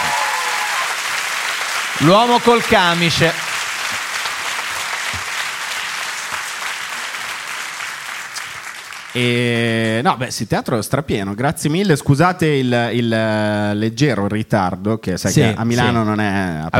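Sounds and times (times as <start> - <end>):
audience applause in a theater: 0.0 - 9.3
speech: 2.0 - 3.4, 9.2 - 16.7.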